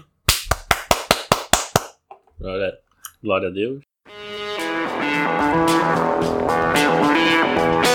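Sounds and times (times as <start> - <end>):
hand clapping: 0.0 - 2.1
speech: 2.4 - 3.9, 5.0 - 7.8.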